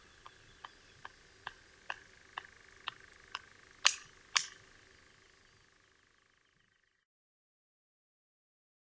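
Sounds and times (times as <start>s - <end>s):
European nightjar giving a sustained dry churr: 0.0s - 7.0s.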